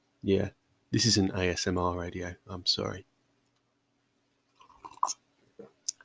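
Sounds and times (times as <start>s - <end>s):
speech: 0.2s - 3.1s, 5.0s - 5.7s
wet mouth and saliva noises: 4.6s - 6.0s.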